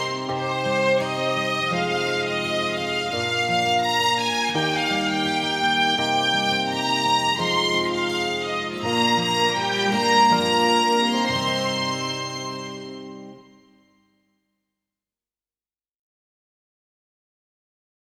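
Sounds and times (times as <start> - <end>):
slow strings: 0.0 - 13.9.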